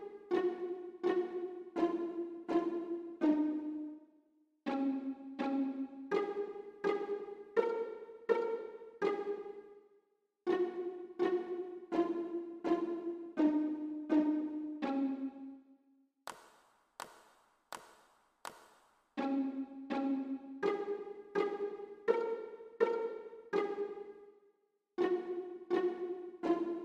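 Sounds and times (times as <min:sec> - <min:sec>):
violin and viola pizzicato: 0:00.0 - 0:04.1, 0:04.7 - 0:09.8, 0:10.5 - 0:15.6, 0:19.2 - 0:24.3, 0:25.0 - 0:26.8.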